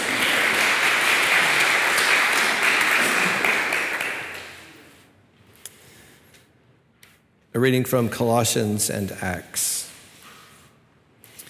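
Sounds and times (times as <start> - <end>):
audience applauding: 0.0 - 5.0
speech: 7.6 - 9.8.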